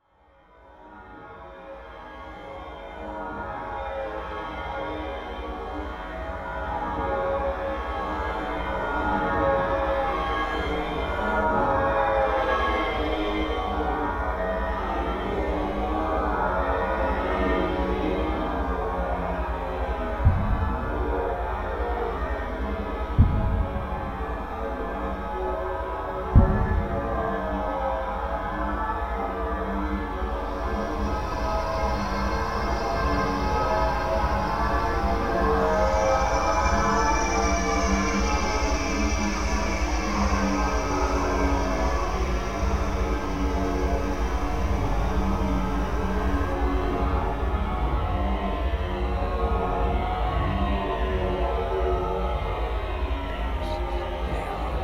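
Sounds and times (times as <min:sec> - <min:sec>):
horror music: 0:00.4 - 0:54.8.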